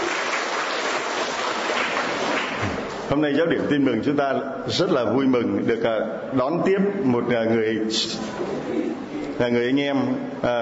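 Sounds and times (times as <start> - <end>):
applause welcoming a guest at a Vietnamese church gathering: 0.0 - 3.1
speech: 3.1 - 8.8, 9.4 - 10.6.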